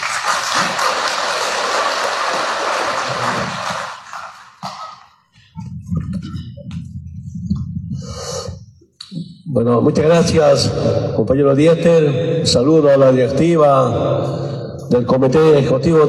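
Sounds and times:
loud applause from a crowd: 0:00.0 - 0:05.1
speech: 0:09.6 - 0:16.0.

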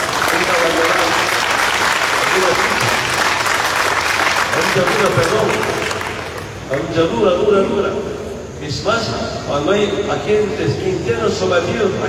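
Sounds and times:
audience applause: 0:00.0 - 0:06.6
speech: 0:04.7 - 0:05.7, 0:06.7 - 0:12.0.

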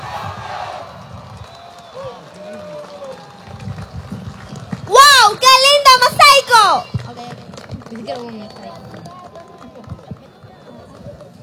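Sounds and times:
large crowd applause and cheering: 0:00.0 - 0:11.4
speech: 0:08.1 - 0:08.9.

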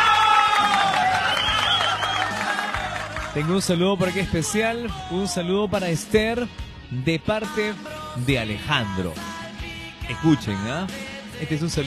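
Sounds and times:
sustained high-pitched shouts or whistles: 0:00.0 - 0:02.7
crowd applause: 0:00.0 - 0:03.8
speech: 0:03.4 - 0:09.3, 0:10.1 - 0:11.8.

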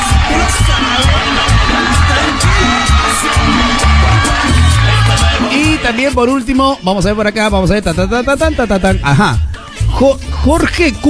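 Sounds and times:
scattered shouts: 0:00.0 - 0:06.0
crowd cheering and whooping with applause: 0:00.0 - 0:06.4
speech: 0:05.9 - 0:11.0.

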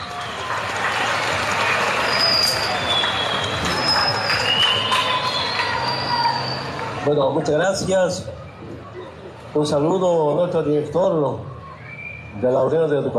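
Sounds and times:
audience applause: 0:00.0 - 0:07.1
high thin whistles: 0:02.0 - 0:06.8, 0:11.8 - 0:12.3
speech: 0:07.1 - 0:08.4, 0:09.5 - 0:11.5, 0:12.4 - 0:13.1.

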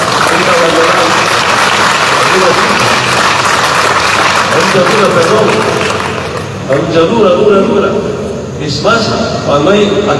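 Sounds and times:
audience applause: 0:00.0 - 0:06.6
speech: 0:04.8 - 0:05.9, 0:06.7 - 0:10.1.

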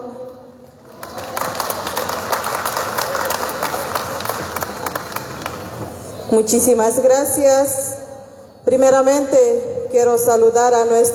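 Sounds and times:
loud audience applause: 0:00.8 - 0:05.9
speech: 0:06.3 - 0:07.8, 0:08.7 - 0:11.1.

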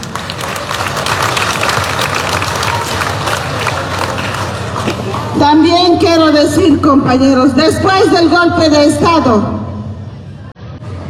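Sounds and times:
applause: 0:00.0 - 0:05.4
speech: 0:05.4 - 0:09.6.

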